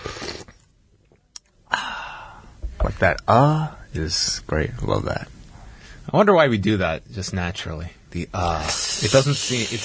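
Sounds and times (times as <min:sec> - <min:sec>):
sipping sound: 0:00.0 - 0:00.6, 0:08.5 - 0:09.8
speech: 0:02.8 - 0:05.4, 0:06.1 - 0:09.8.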